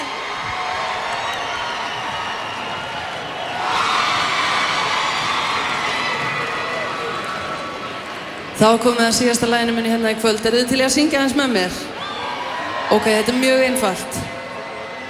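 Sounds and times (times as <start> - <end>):
crowd cheering loudly for a singer at an evening concert: 0.0 - 8.6, 11.8 - 15.0
speech: 8.6 - 11.9, 12.9 - 14.4.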